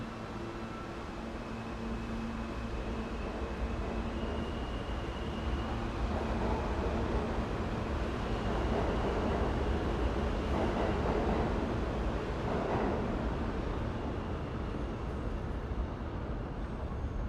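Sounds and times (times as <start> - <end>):
subway station ambience in New York City: 0.0 - 17.2.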